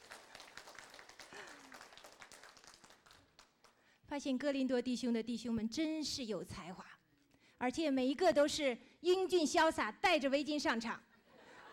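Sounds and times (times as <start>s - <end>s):
audience applause: 0.0s - 3.5s
speech: 4.1s - 7.0s, 7.6s - 11.1s.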